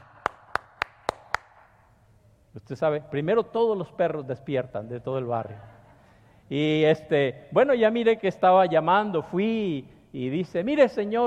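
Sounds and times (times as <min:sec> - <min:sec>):
hand claps: 0:00.0 - 0:01.7
speech: 0:02.6 - 0:05.8, 0:06.5 - 0:11.2.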